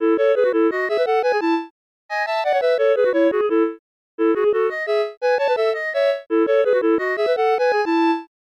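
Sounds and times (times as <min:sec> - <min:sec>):
musical poem: 0:00.0 - 0:08.3.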